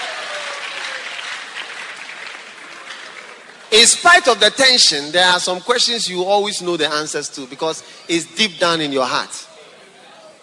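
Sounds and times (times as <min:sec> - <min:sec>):
crowd applauding: 0:00.0 - 0:04.0
speech: 0:03.8 - 0:09.5.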